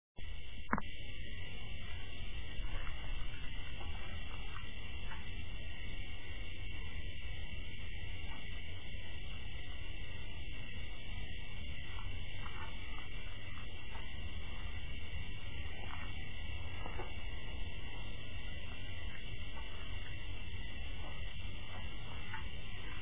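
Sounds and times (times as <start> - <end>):
cricket song: 0.2 - 23.0.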